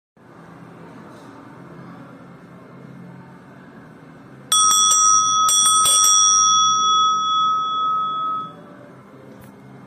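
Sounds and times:
Om bell ringing: 4.5s - 8.8s.

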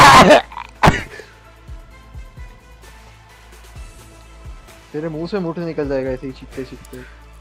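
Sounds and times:
person sneezing: 0.2s - 1.3s.

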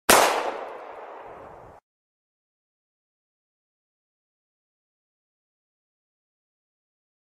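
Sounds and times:
gunshots: 0.1s - 1.6s.

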